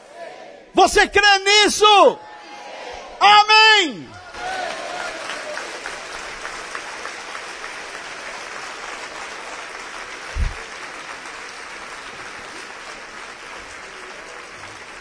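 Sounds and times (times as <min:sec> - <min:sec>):
speech: 0:00.7 - 0:02.3, 0:03.2 - 0:04.1
audience applauding: 0:04.1 - 0:15.0.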